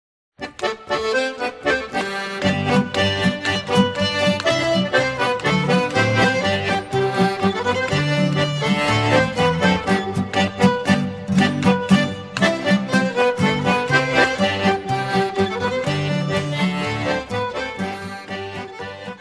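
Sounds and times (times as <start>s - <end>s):
polka music from the United States: 0.4s - 19.2s.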